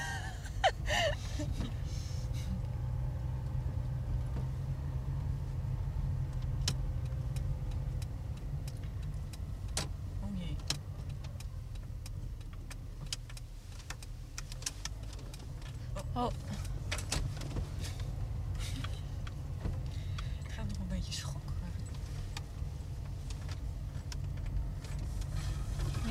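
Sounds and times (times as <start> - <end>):
car driving during a test drive: 0.0 - 26.0
sharp clicks and ticks: 6.2 - 20.8
speech: 16.2 - 16.4.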